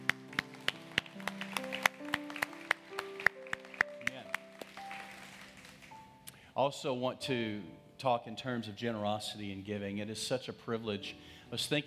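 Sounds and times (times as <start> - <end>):
audience clapping for departing children: 0.0 - 6.2
speech: 6.6 - 11.8.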